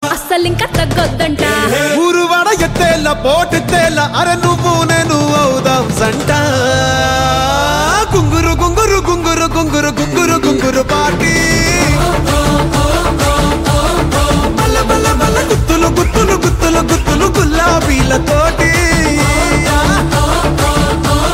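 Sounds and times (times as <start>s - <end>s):
Telugu song: 0.7s - 21.3s.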